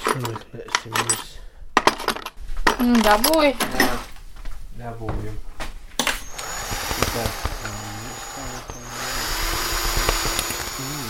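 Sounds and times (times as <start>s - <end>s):
speech: 0.2s - 1.4s, 2.8s - 4.0s, 4.8s - 5.5s, 7.0s - 7.8s
power drill screwing detector to ceiling: 6.0s - 11.0s.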